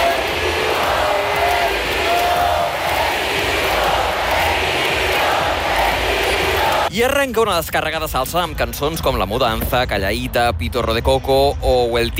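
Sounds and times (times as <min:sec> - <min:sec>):
concert audience screaming wildly: 0:00.0 - 0:06.9
speech: 0:07.0 - 0:12.1.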